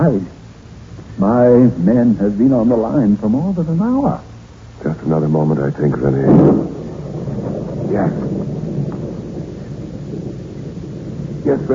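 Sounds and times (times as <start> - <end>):
speech: 0.0 - 0.4, 1.2 - 6.7, 7.9 - 8.4, 11.5 - 11.7
rain: 0.0 - 11.7
thunder: 5.4 - 11.7.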